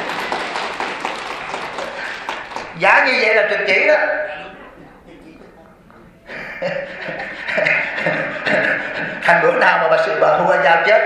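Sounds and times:
laughter: 0.0 - 2.7, 6.2 - 10.3
listeners at a Buddhist dharma talk clapping: 0.0 - 3.1
speech: 2.8 - 4.4, 9.3 - 11.0.

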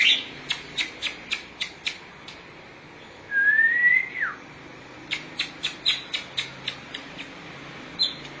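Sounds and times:
Oriental magpie-robin giving ticking notes and a rising whistle: 0.0 - 2.0, 5.1 - 7.4, 8.0 - 8.3.

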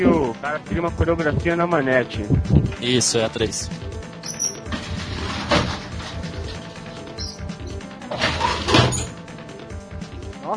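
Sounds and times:
speech: 0.0 - 4.0
heavy dungeon door opening: 4.2 - 9.2.

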